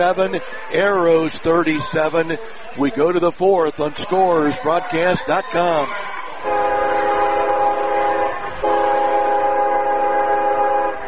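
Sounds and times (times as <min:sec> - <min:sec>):
speech: 0:00.0 - 0:06.7
CSX freight train horn blasts: 0:06.4 - 0:11.0.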